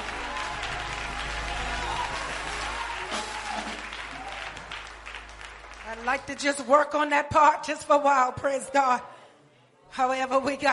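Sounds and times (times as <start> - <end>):
audience clapping hands: 0.0 - 6.9
speech: 6.0 - 9.1, 10.0 - 10.7.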